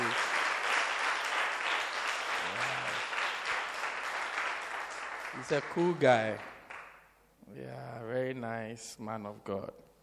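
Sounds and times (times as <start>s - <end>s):
crowd clapping: 0.0s - 7.2s
speech: 5.4s - 6.5s, 7.5s - 9.8s.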